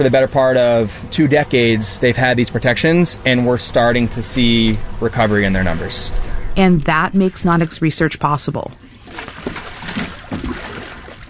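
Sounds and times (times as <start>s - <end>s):
speech: 0.0s - 8.8s
baby shark splashing in a cooler on a boat deck: 8.9s - 11.2s.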